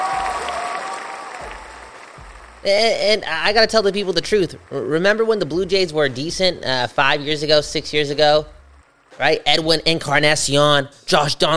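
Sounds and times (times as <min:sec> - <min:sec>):
crowd applauding: 0:00.0 - 0:10.2
low rumble: 0:01.5 - 0:04.8, 0:05.5 - 0:10.5
speech: 0:02.6 - 0:08.6, 0:09.2 - 0:11.5.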